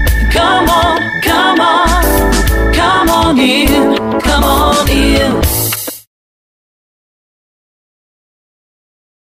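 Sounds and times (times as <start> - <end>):
groove music: 0.0 - 6.1.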